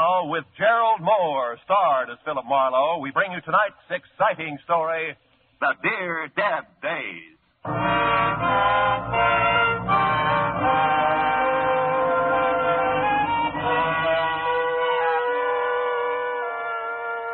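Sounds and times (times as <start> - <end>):
speech: 0.2 - 10.9
car horns honking: 7.7 - 17.3
street traffic rumble: 9.0 - 14.6.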